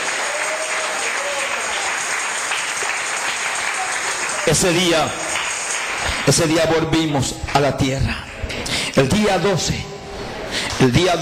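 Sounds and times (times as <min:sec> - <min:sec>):
audience applause: 0:00.0 - 0:06.9
speech: 0:04.5 - 0:05.2, 0:06.3 - 0:08.3, 0:09.0 - 0:09.9, 0:10.8 - 0:11.1.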